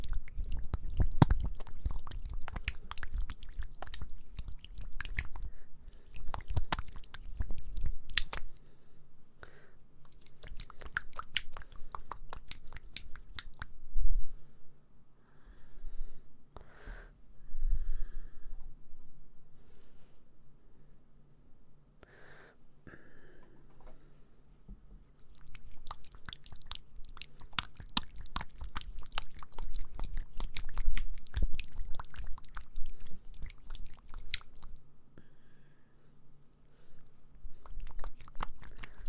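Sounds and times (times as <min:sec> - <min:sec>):
ASMR mouth clicks and wet smacks: 0:00.0 - 0:08.7, 0:10.0 - 0:13.8, 0:25.2 - 0:34.8, 0:37.5 - 0:39.0
faint low hum: 0:00.0 - 0:39.0.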